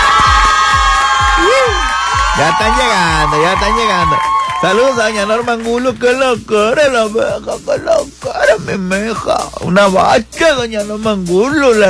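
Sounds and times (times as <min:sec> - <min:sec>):
crowd cheering and applause: 0:00.0 - 0:06.1
speech: 0:02.4 - 0:11.8.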